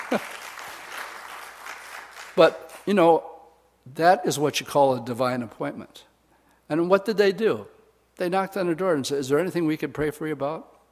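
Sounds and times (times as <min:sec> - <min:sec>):
audience clapping: 0:00.0 - 0:02.9
speech: 0:00.1 - 0:00.3, 0:02.4 - 0:03.3, 0:03.9 - 0:06.1, 0:06.7 - 0:10.7.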